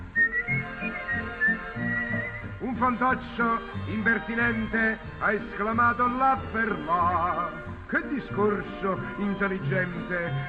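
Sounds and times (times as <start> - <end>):
person whistling a tune: 0.1 - 2.7
speech: 2.8 - 10.4.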